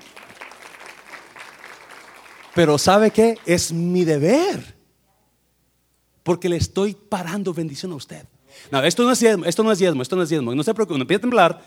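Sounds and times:
audience applause: 0:00.0 - 0:03.6
speech: 0:02.6 - 0:04.8, 0:06.3 - 0:11.6.

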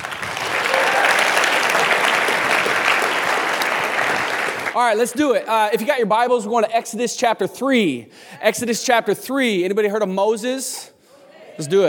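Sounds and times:
audience applause: 0:00.0 - 0:04.8
speech: 0:04.8 - 0:11.0, 0:11.6 - 0:11.8.

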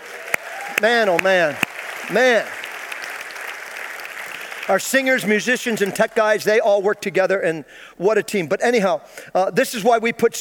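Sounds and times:
crowd applauding: 0:00.0 - 0:06.2
speech: 0:00.8 - 0:02.6, 0:04.7 - 0:10.3.

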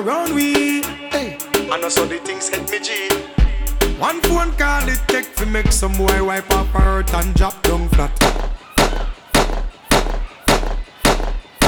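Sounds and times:
speech: 0:00.0 - 0:08.5
gunshot sound effect: 0:08.2 - 0:11.6.

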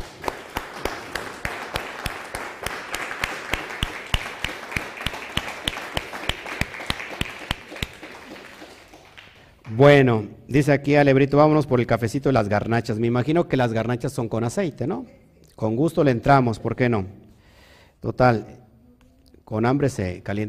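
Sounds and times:
crowd applause: 0:00.0 - 0:09.7
sharp steady rhythmic clap: 0:00.0 - 0:09.8
speech: 0:09.8 - 0:17.2, 0:18.0 - 0:18.6, 0:19.5 - 0:20.4.

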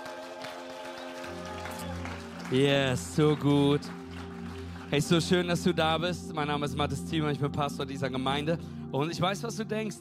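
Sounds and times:
church congregation applause welcoming its Ludwigslust site: 0:00.0 - 0:06.2
sustained musical tones: 0:01.2 - 0:09.9
speech: 0:02.5 - 0:04.0, 0:04.9 - 0:09.9.

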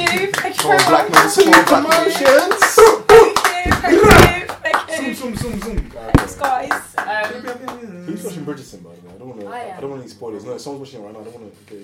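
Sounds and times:
round of applause, hands clapping: 0:00.0 - 0:07.8
speech: 0:00.7 - 0:02.6, 0:10.6 - 0:11.8.

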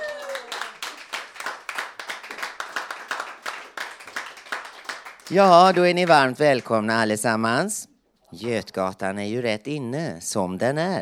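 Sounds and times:
audience applause: 0:00.0 - 0:06.7
speech: 0:05.3 - 0:11.0.

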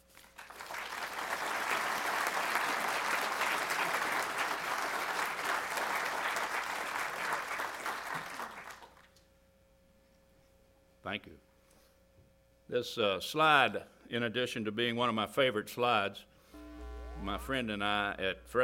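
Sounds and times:
audience applause welcoming a speaker at a historical society lecture: 0:00.0 - 0:09.0
speech: 0:12.7 - 0:16.3, 0:17.2 - 0:18.6.

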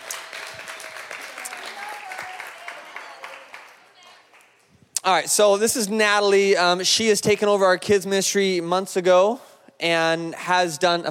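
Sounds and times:
crowd applauding: 0:00.0 - 0:04.6
speech: 0:05.0 - 0:11.0.

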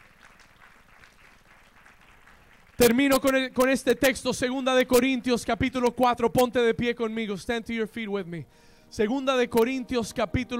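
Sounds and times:
crowd applauding: 0:00.0 - 0:03.4
speech: 0:02.8 - 0:10.5.

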